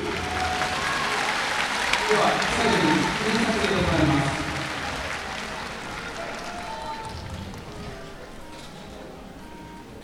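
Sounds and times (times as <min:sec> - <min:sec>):
audience applause: 0:00.0 - 0:08.0
speech: 0:02.1 - 0:04.1.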